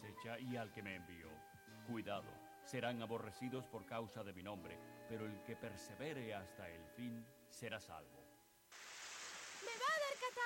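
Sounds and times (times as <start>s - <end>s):
speech: 0.0s - 8.8s, 10.2s - 10.4s
rain falling: 8.7s - 10.4s.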